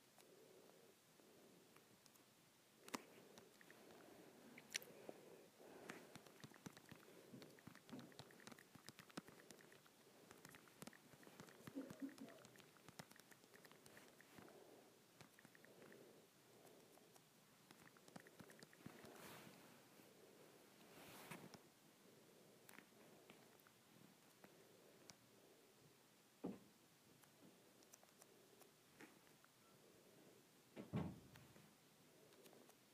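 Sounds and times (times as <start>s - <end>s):
soft steady hiss: 0.0s - 32.9s
fingers tapping on an Android phone: 6.0s - 14.4s, 17.1s - 19.1s.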